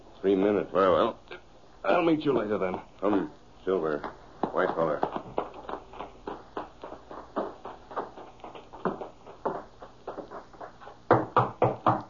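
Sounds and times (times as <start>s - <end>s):
speech: 0.2s - 1.2s, 2.1s - 5.2s
knocking on a door: 11.1s - 12.0s.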